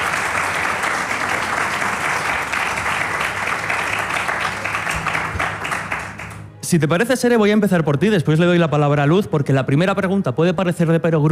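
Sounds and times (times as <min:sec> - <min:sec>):
crowd applauding: 0:00.0 - 0:06.6
speech: 0:06.7 - 0:11.2.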